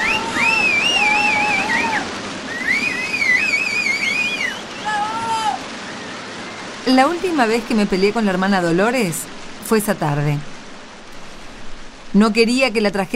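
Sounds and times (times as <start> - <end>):
audience applause: 0.0 - 5.6
speech: 6.9 - 10.5, 12.2 - 13.1.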